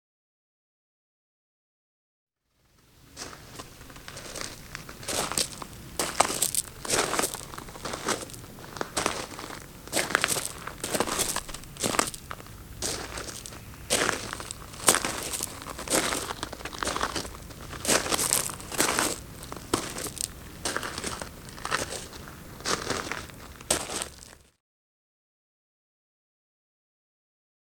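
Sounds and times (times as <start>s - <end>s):
slow footsteps on large gravel: 2.7s - 24.5s.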